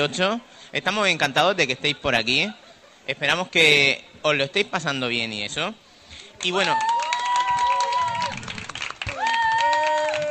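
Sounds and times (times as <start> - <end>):
speech: 0.0 - 5.8, 6.4 - 6.9
canned applause: 6.4 - 10.2
whoops: 6.6 - 10.2.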